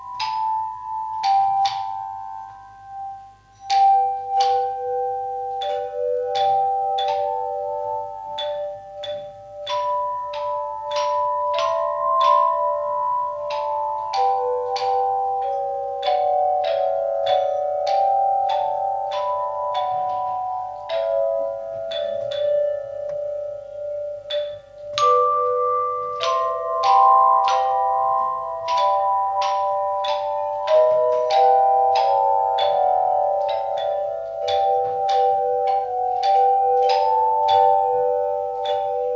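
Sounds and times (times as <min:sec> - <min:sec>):
handbell: 0:00.0 - 0:39.1.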